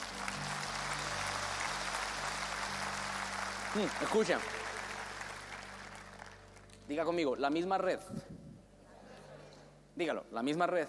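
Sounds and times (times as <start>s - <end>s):
audience applause: 0.0s - 6.8s
speech: 3.7s - 4.6s, 6.9s - 8.4s, 10.0s - 10.8s.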